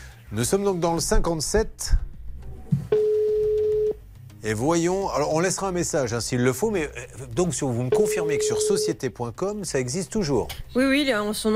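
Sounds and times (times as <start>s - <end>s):
speech: 0.3s - 2.1s, 4.4s - 11.5s
telephone ringing tone during call: 2.9s - 4.0s, 7.9s - 9.0s.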